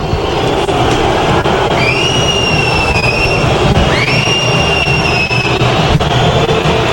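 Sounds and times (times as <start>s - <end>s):
stadium crowd roaring at arriving team: 0.0s - 6.9s
shrill whistles from stadium crowd: 1.7s - 6.9s.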